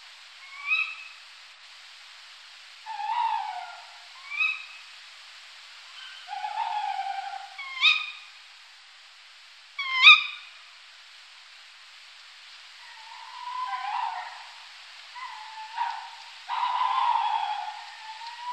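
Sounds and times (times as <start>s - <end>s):
tawny owl calls: 0.4s - 1.2s, 2.8s - 4.9s, 5.9s - 8.3s, 9.8s - 10.6s, 12.8s - 18.5s.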